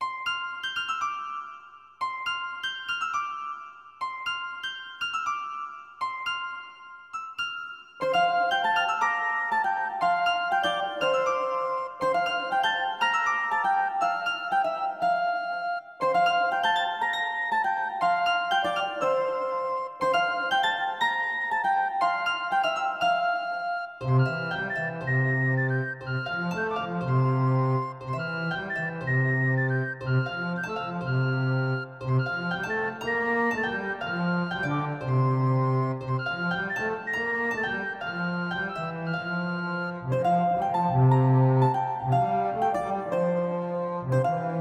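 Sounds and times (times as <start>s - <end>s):
Celtic music: 0.0s - 44.6s.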